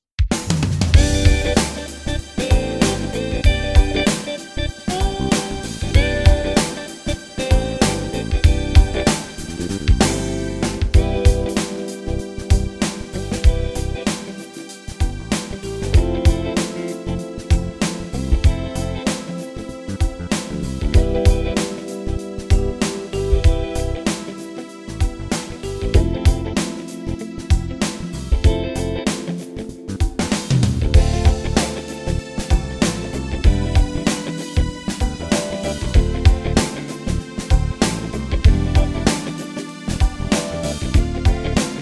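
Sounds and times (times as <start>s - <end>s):
Solina string synthesizer funk music: 0.3s - 41.8s.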